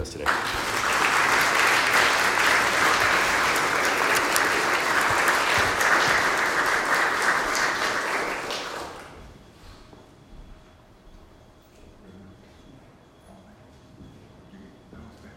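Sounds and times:
speech: 0:00.0 - 0:00.6
audience applause welcoming a speaker: 0:00.0 - 0:09.3.

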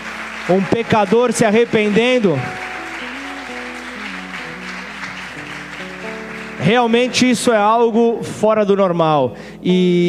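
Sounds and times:
audience applause: 0:00.0 - 0:07.2
sustained keyboard chords: 0:00.0 - 0:10.0
speech: 0:00.5 - 0:02.6, 0:06.6 - 0:10.0.

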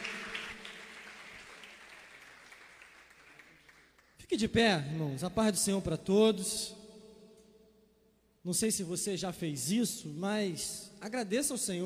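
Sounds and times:
audience applauding: 0:00.0 - 0:04.2
speech: 0:04.2 - 0:06.8, 0:08.4 - 0:11.8.

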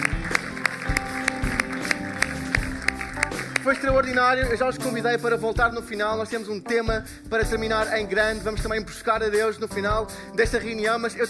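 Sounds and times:
church audience applause: 0:00.0 - 0:04.6
speech: 0:03.7 - 0:11.2.

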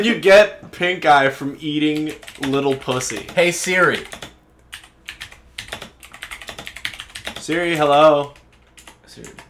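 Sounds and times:
speech: 0:00.0 - 0:04.2, 0:07.5 - 0:08.4, 0:09.2 - 0:09.4
computer keyboard typing a Google search: 0:01.9 - 0:09.4.

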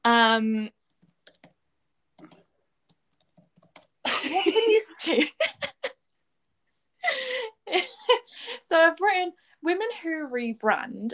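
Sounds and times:
speech: 0:00.4 - 0:00.8, 0:04.1 - 0:05.8, 0:07.0 - 0:11.1
typing on a computer keyboard into a shared Google Doc: 0:00.9 - 0:01.6, 0:02.2 - 0:04.0.

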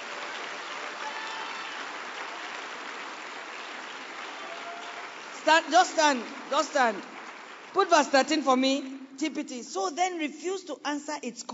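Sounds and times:
audience clapping: 0:00.0 - 0:09.0
speech: 0:05.4 - 0:07.1, 0:07.7 - 0:11.5.

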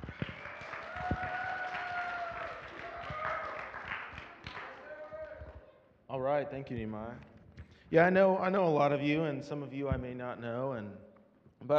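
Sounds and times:
audience clapping and cheering: 0:00.0 - 0:05.7
speech: 0:06.2 - 0:07.3, 0:07.9 - 0:11.7.

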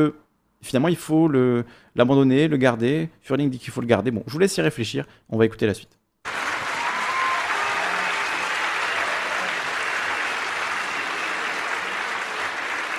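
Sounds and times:
speech: 0:00.0 - 0:06.0
audience applause: 0:06.3 - 0:12.9.

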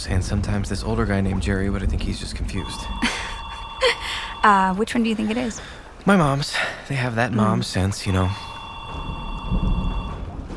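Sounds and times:
speech: 0:00.0 - 0:08.5
low rumbling background: 0:00.0 - 0:10.5
telephone ringing: 0:02.6 - 0:05.4, 0:08.1 - 0:10.3.

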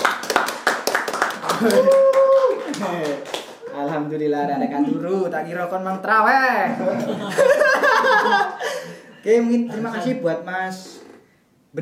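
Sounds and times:
audience applause: 0:00.0 - 0:03.6
speech: 0:01.6 - 0:08.6, 0:09.2 - 0:11.0
laughter: 0:06.7 - 0:10.4.

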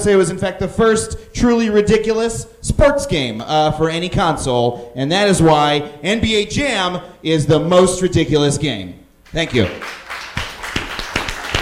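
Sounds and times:
speech: 0:00.0 - 0:10.0
polite applause: 0:09.3 - 0:11.6.

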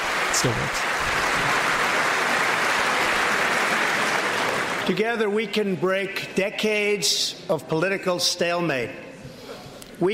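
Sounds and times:
audience applause after a speech line: 0:00.0 - 0:05.0
speech: 0:00.4 - 0:01.2, 0:04.9 - 0:09.0, 0:10.0 - 0:10.1.

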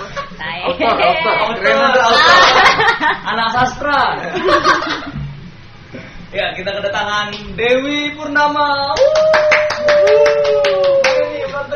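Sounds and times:
laughter: 0:00.0 - 0:03.2, 0:04.2 - 0:05.2
speech: 0:00.4 - 0:02.2, 0:03.1 - 0:05.2, 0:06.3 - 0:09.4
hand clapping: 0:08.9 - 0:11.4.

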